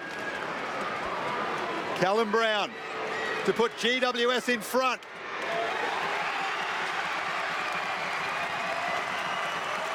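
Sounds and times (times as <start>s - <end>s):
stadium crowd cheering: 0.0s - 9.9s
speech: 2.0s - 5.2s.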